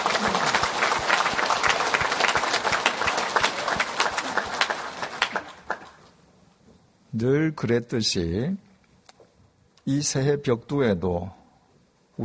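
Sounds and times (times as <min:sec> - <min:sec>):
audience applause: 0:00.0 - 0:06.1
speech: 0:07.2 - 0:08.7, 0:09.9 - 0:11.4.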